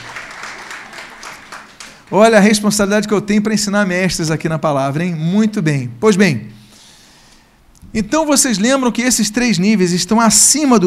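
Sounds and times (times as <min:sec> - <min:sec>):
audience applause: 0:00.0 - 0:02.2
speech: 0:02.1 - 0:06.6, 0:07.9 - 0:10.8.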